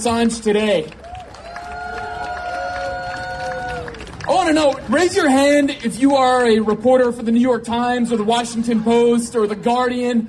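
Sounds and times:
speech: 0.0s - 1.0s, 4.3s - 10.2s
crowd applause: 0.9s - 5.8s
crowd whistles and cheers: 1.0s - 4.0s.

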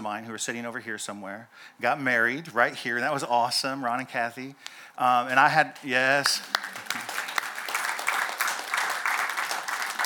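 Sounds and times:
speech: 0.0s - 6.8s
crowd applauding: 6.2s - 10.0s.

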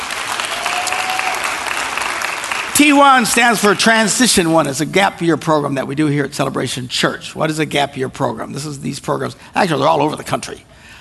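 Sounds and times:
audience applause at a church service welcoming students and parents: 0.0s - 3.8s
speech: 2.8s - 10.9s.

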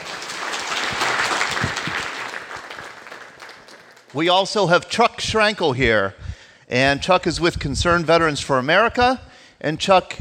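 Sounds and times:
crowd applauding: 0.0s - 4.5s
speech: 4.2s - 10.2s.

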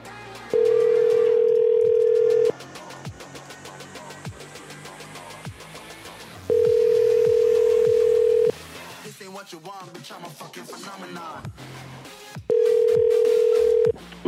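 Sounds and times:
landline telephone dial tone: 0.6s - 2.5s, 6.5s - 8.5s, 12.5s - 13.9s.

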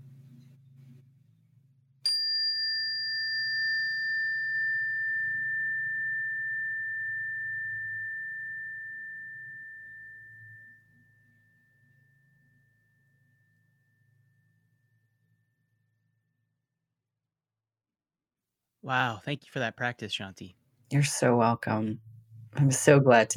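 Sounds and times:
meditation bell ringing: 2.1s - 10.8s
speech: 18.8s - 23.3s.

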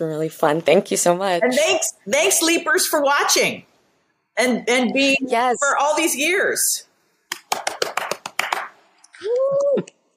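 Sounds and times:
speech: 0.0s - 3.7s, 4.4s - 6.9s
hand clapping from a small group: 7.3s - 8.8s
person whooping: 9.2s - 10.0s.

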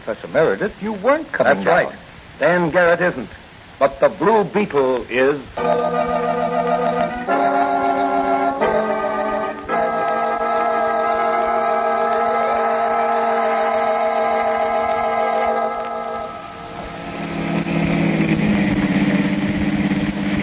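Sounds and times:
speech: 0.1s - 7.4s
car engine humming while driving: 5.5s - 20.4s.

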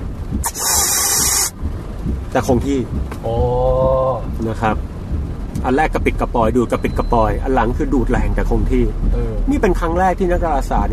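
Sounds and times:
faint low rumble of sonified black hole accretion data: 0.0s - 10.9s
speech: 0.4s - 0.7s, 2.3s - 4.9s, 5.6s - 10.9s
loud bright hissing noise of sonified black hole accretion data: 0.4s - 1.6s.

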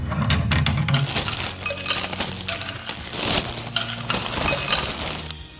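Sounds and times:
metallic rattles: 0.2s - 5.4s
glass clinking: 0.9s - 5.3s.

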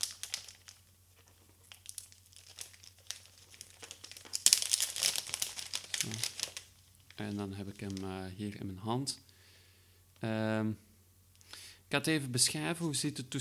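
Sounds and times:
plastic packaging foil crinkled and peeled off a new 7-inch Android device: 0.0s - 8.2s
speech: 7.2s - 9.3s, 10.2s - 10.9s, 11.9s - 13.3s.

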